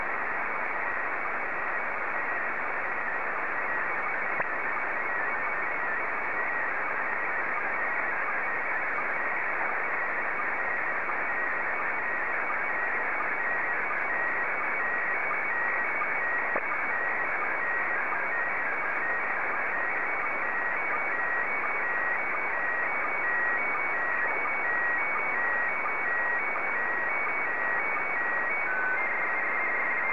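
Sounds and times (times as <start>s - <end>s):
SSTV PD90 signal tones: 0.9s - 30.1s.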